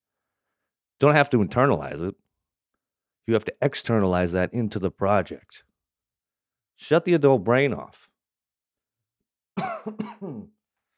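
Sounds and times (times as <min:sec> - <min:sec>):
speech: 0:01.0 - 0:02.2, 0:03.2 - 0:05.7, 0:06.8 - 0:08.1, 0:09.6 - 0:10.6
shallow cough: 0:09.6 - 0:10.6.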